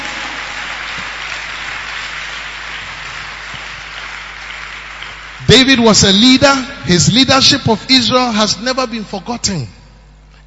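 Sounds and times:
audience clapping: 0.0 - 6.2
speech: 5.5 - 9.8.

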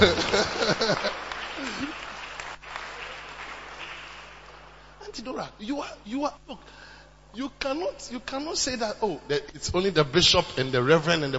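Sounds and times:
speech: 0.0 - 1.1, 5.3 - 11.3
laughter: 0.0 - 2.4
audience clapping: 0.0 - 5.5.

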